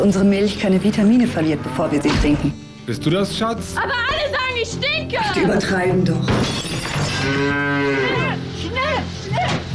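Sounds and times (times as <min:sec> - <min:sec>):
speech: 0:00.0 - 0:09.6
cow mooing: 0:07.1 - 0:08.5.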